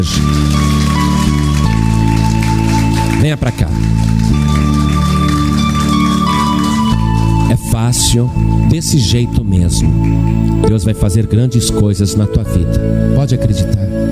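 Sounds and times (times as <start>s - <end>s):
speech: 0.0s - 0.6s, 3.3s - 4.6s, 7.5s - 14.0s
church audience applauding: 0.0s - 7.9s.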